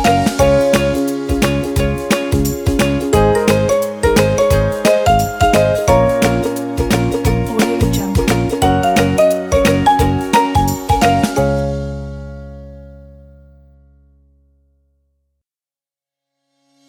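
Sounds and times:
upbeat inspiring cheerful background music for kids: 0.0 - 12.8.

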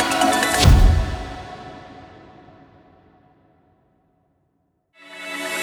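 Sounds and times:
logo ident: 0.1 - 2.2.

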